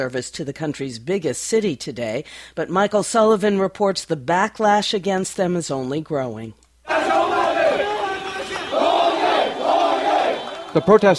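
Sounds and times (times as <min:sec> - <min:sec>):
speech: 0:00.0 - 0:07.2, 0:10.8 - 0:11.1
large protest crowd shouting slogans in unison: 0:06.9 - 0:11.0.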